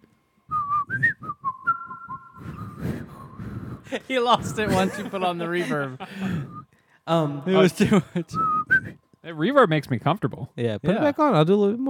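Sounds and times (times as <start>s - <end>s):
person whistling a flute-like melody: 0.5s - 3.9s, 6.2s - 6.7s, 8.2s - 9.1s
speech: 3.9s - 6.5s, 7.1s - 11.8s
laughter: 3.9s - 6.6s, 7.4s - 8.4s.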